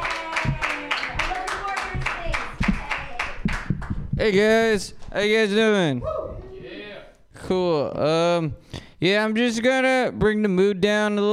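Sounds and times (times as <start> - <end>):
person cheering: 0.0 - 2.0
small audience clapping at an open mic comedy night: 0.0 - 4.5
speech: 0.4 - 0.7, 4.2 - 6.2, 7.5 - 11.3.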